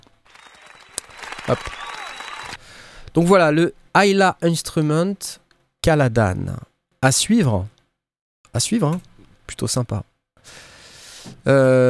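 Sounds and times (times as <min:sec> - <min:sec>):
applause: 0:00.2 - 0:02.6
speech: 0:01.5 - 0:01.8, 0:03.2 - 0:07.8, 0:08.5 - 0:10.7, 0:11.4 - 0:11.8.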